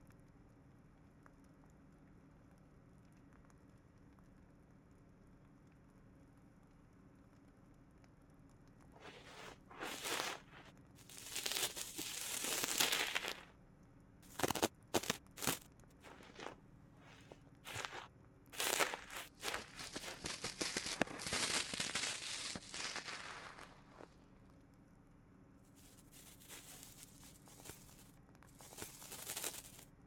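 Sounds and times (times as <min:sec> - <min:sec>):
left ear cleaning with an ear pick: 0:09.0 - 0:13.4, 0:14.3 - 0:23.1, 0:25.8 - 0:29.8.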